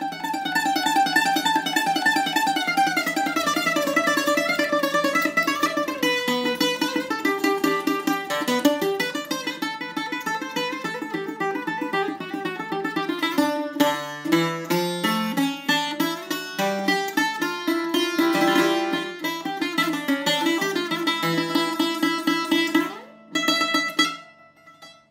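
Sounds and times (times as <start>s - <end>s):
bouzouki solo: 0.0s - 25.0s.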